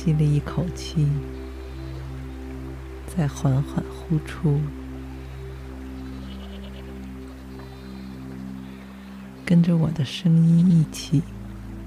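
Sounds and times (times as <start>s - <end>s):
speech: 0.0s - 1.4s, 3.2s - 4.8s, 9.5s - 11.4s
sheep bleating: 6.2s - 6.9s.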